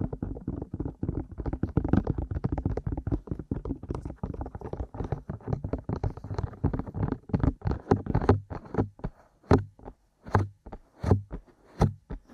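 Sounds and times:
ear tapping: 0.0 - 12.3.

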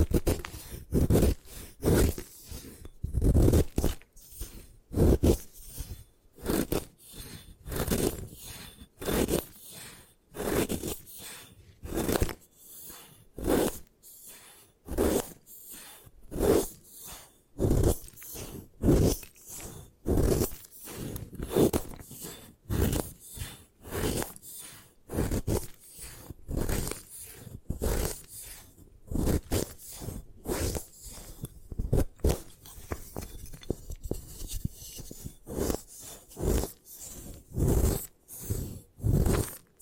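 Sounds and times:
gym chalk being crushed: 0.0 - 39.8.

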